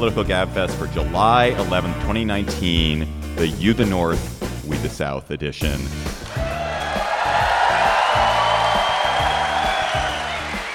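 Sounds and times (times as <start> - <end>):
speech: 0.0 - 6.1
live crowd cheering and whooping: 6.2 - 10.7.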